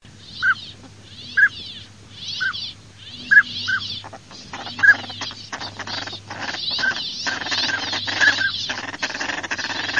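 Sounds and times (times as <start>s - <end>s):
northern pintail whistled calls: 2.3s - 3.9s, 4.5s - 9.9s.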